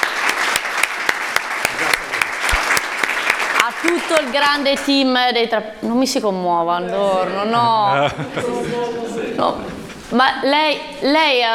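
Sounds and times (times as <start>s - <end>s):
audience applause: 0.0s - 4.9s
speech: 3.8s - 11.5s
laughter: 7.4s - 10.1s.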